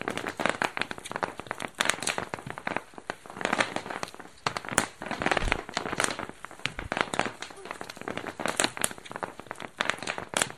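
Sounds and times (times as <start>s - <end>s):
bubble wrap popping at Dorchminster Mansion: 0.0s - 10.5s
faint voices murmuring: 7.3s - 8.4s.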